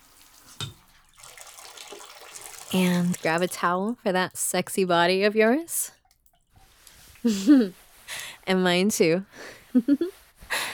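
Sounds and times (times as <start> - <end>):
water running from a shower faucet: 0.0 - 4.7
speech: 2.7 - 6.0, 7.2 - 7.8, 8.5 - 10.2.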